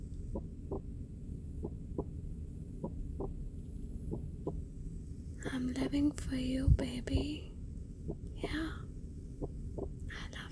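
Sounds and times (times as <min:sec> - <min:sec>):
heartbeat: 0:00.0 - 0:04.8, 0:06.6 - 0:07.4, 0:08.0 - 0:10.0
speech: 0:05.6 - 0:07.5, 0:08.1 - 0:08.8.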